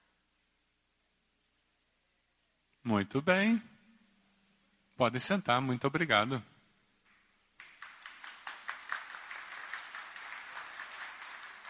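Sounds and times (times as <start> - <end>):
speech: 2.8 - 3.7, 5.0 - 6.5
applause: 7.1 - 11.6.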